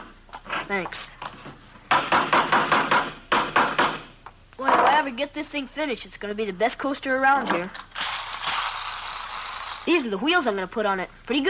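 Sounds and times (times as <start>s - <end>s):
speech: 0.7s - 1.4s, 5.0s - 7.8s, 9.9s - 11.4s
hammer knocking: 1.9s - 4.1s.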